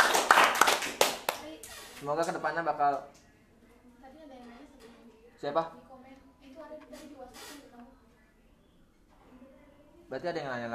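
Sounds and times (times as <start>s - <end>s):
audience clapping: 0.0s - 1.4s
speech: 2.0s - 3.2s, 5.4s - 5.8s, 10.1s - 10.7s.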